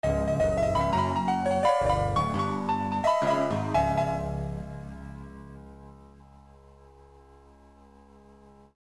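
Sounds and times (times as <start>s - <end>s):
audio logo jingle: 0.0s - 5.4s.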